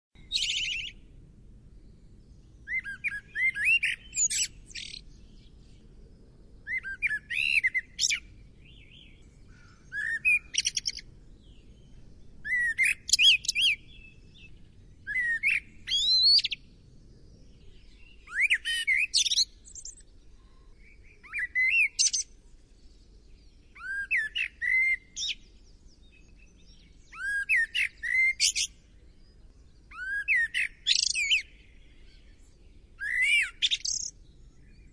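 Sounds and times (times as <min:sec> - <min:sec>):
bird bright high chirps and twittering: 0:00.2 - 0:01.1, 0:02.0 - 0:05.8, 0:06.7 - 0:34.9.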